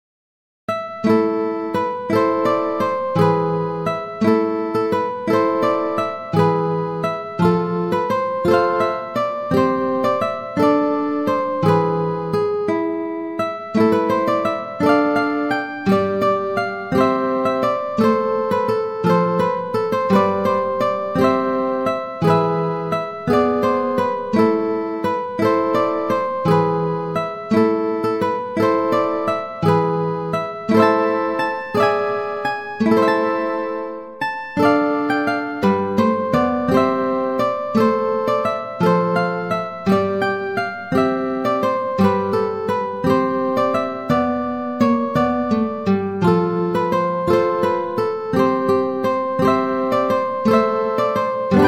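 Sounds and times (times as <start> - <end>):
solo guitar: 0.7 - 51.6.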